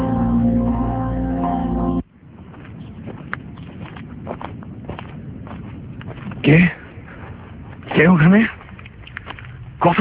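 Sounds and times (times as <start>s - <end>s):
sustained musical chord: 0.0s - 2.0s
tired heavy footsteps shuffling across a wooden verandah: 2.4s - 9.5s
speech: 6.5s - 6.8s, 8.0s - 8.6s.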